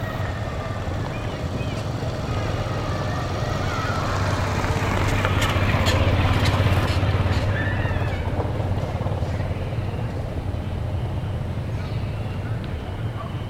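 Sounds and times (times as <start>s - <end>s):
street ambience in Switzerland and Mexico: 0.0s - 13.4s.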